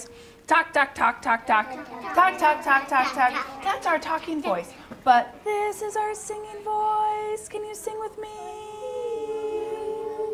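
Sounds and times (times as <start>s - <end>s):
speech: 0.5s - 8.6s
voice imitating a fire engine siren: 8.4s - 10.3s.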